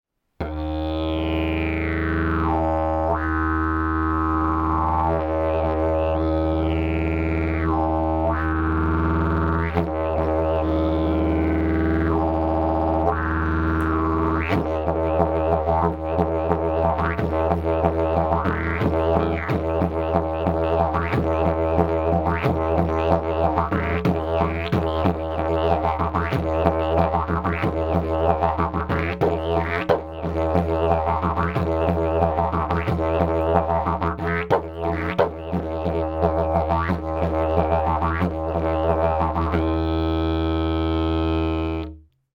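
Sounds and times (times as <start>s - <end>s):
didgeridoo: 0.4s - 42.0s.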